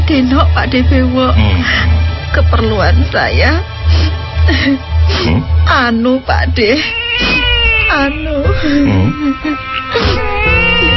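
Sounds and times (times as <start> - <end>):
speech: 0.1 - 10.2
woman crying: 4.4 - 5.3, 6.6 - 10.9.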